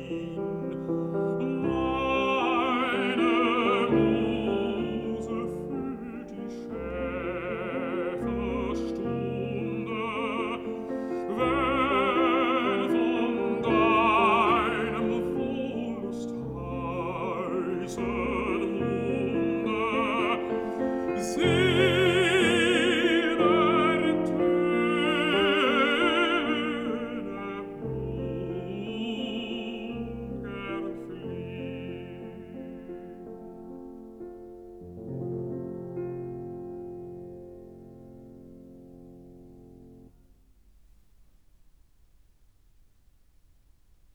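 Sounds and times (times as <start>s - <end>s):
person singing: 0.0s - 33.8s
piano: 0.0s - 44.1s.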